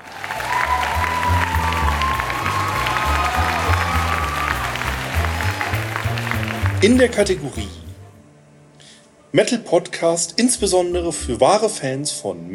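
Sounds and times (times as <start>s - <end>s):
audience applause: 0.0s - 7.8s
speech: 6.8s - 7.8s, 9.3s - 12.5s.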